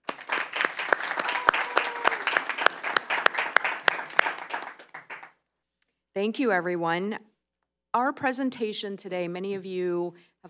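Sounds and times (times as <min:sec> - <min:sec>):
meeting audience applause welcoming two new members: 0:00.0 - 0:05.3
speech: 0:06.2 - 0:07.3, 0:07.9 - 0:10.4.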